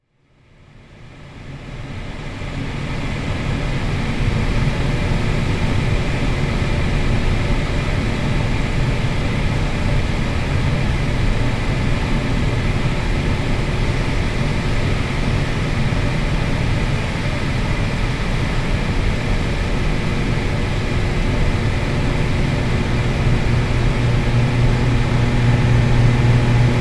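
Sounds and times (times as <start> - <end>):
HVAC drone: 0.4 - 26.7.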